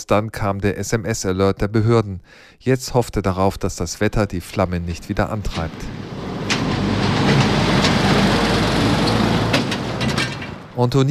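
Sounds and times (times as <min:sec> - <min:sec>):
speech: 0:00.0 - 0:06.8, 0:10.8 - 0:11.0
construction truck driving over a roundabout: 0:04.4 - 0:10.9.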